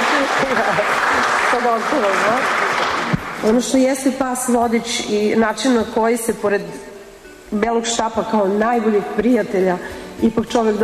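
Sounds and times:
audience clapping to greet the head of a Serbian association of the blind: 0.0s - 3.6s
speech: 1.6s - 2.7s, 3.4s - 6.9s, 7.5s - 10.8s.

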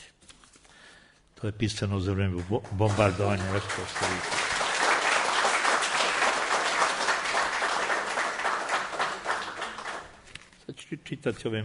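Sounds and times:
speech: 1.4s - 4.4s, 10.9s - 11.6s
audience applauding after a poetry reading: 2.4s - 10.2s.

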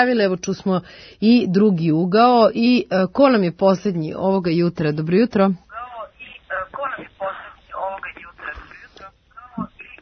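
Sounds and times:
speech: 0.0s - 5.6s
radio playing in the background of a caller's phone line: 5.7s - 10.0s.

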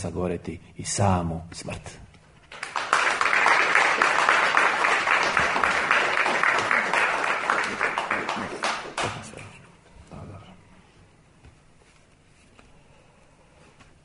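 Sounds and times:
speech: 0.0s - 2.1s
audience applause at a poetry reading: 2.5s - 9.4s.

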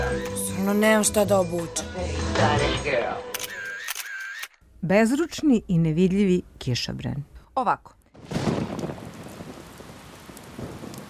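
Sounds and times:
speech: 0.7s - 3.3s, 4.8s - 8.0s
downpour of rain on a street: 8.2s - 11.0s.

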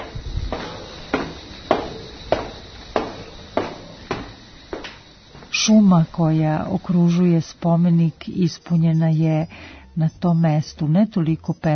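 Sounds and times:
footsteps on stairs: 0.0s - 5.6s
faint continuous high-pitched buzz: 0.0s - 11.7s
speech: 5.6s - 11.7s.

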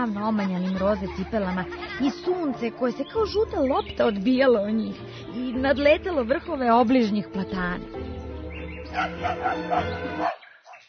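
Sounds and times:
speech: 0.0s - 8.2s, 8.9s - 10.4s
laughter: 0.1s - 2.8s
dog barking loudly: 8.9s - 10.8s.

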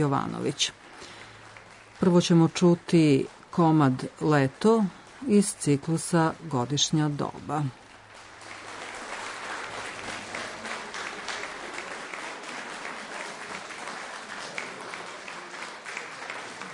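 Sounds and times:
speech: 0.0s - 0.8s, 2.0s - 7.8s
concert audience applauding after a classical composition: 0.0s - 16.7s.

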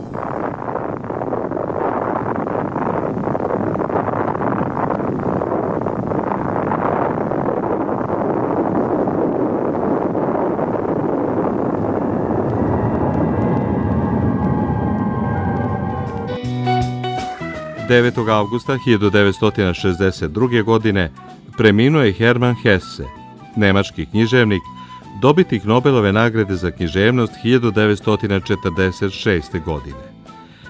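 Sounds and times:
atomic bomb explosion rumbling roar: 0.0s - 17.2s
speech: 17.9s - 30.1s.

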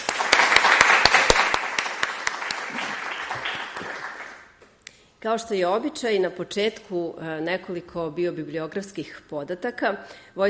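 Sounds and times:
audience applause welcoming a poet at a literary evening: 0.0s - 4.5s
speech: 5.2s - 10.4s.

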